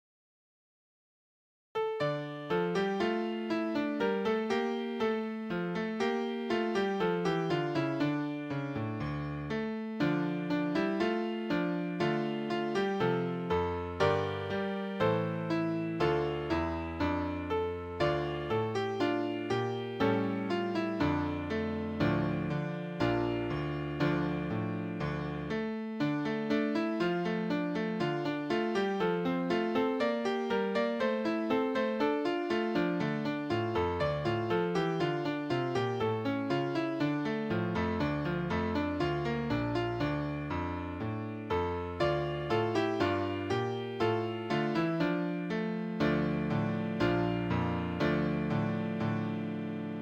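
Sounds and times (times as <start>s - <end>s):
piano: 1.8s - 49.9s.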